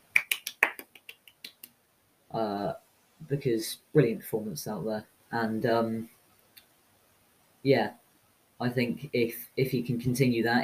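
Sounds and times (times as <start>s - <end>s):
hand clapping: 0.0s - 1.8s
speech: 2.3s - 6.2s, 7.6s - 8.0s, 8.6s - 10.6s.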